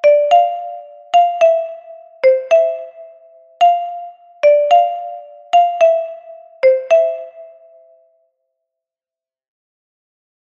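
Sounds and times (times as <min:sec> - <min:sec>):
soprano metallophone playing rumba: 0:00.0 - 0:07.9.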